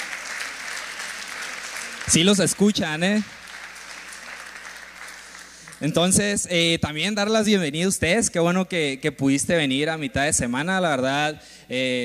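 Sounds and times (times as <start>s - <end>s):
audience applause: 0.0s - 6.2s
speech: 2.1s - 3.4s, 5.8s - 12.0s.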